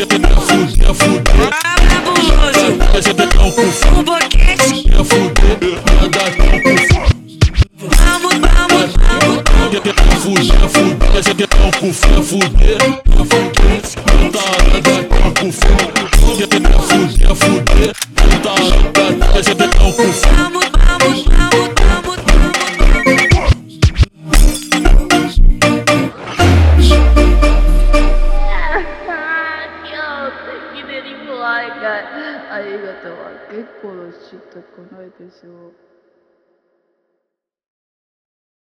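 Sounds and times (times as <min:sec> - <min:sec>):
slowed funk music: 0:00.0 - 0:29.2.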